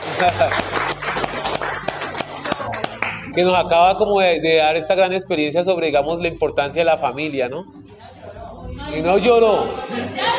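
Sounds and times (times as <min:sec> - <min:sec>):
laughter: 0:00.0 - 0:03.2
audience applause: 0:00.0 - 0:03.5
speech: 0:00.2 - 0:00.8, 0:03.4 - 0:07.8, 0:08.9 - 0:10.3.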